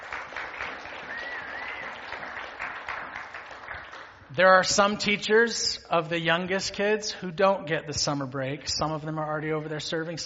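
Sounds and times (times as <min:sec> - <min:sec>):
audience clapping: 0:00.0 - 0:04.4
speech: 0:04.3 - 0:10.2.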